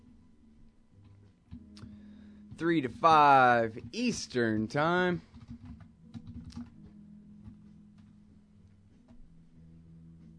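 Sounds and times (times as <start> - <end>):
speech: 2.6 - 5.3
typing on a computer keyboard writing a blog entry: 5.2 - 6.8.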